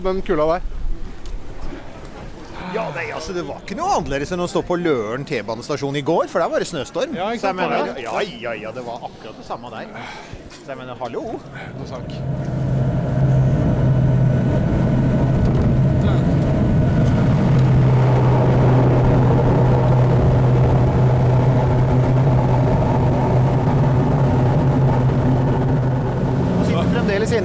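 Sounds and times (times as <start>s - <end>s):
speech: 0.0s - 0.8s, 2.7s - 12.6s
propeller aircraft landing: 11.4s - 27.4s.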